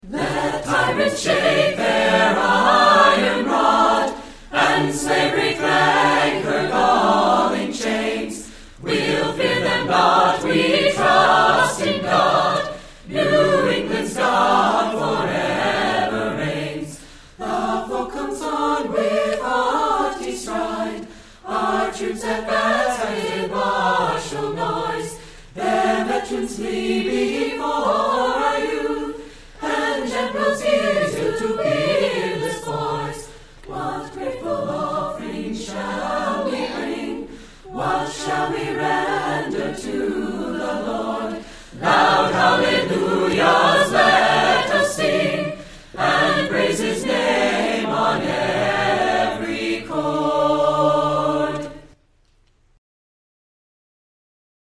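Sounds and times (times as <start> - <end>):
choir singing: 0.0 - 52.0.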